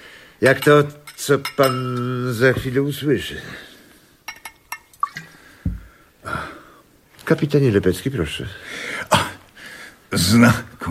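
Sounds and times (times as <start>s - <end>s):
speech: 0.4s - 3.7s, 7.3s - 8.9s, 10.1s - 10.8s
glass clinking and tapping: 0.6s - 2.7s, 4.2s - 5.9s.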